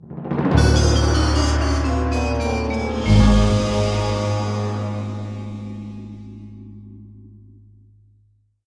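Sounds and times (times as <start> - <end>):
losing jingle: 0.6 - 6.4.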